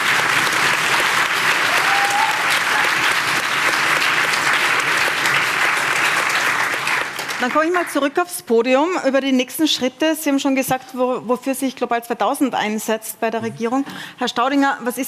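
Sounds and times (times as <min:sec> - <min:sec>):
audience applause: 0:00.0 - 0:08.1
speech: 0:07.4 - 0:15.0.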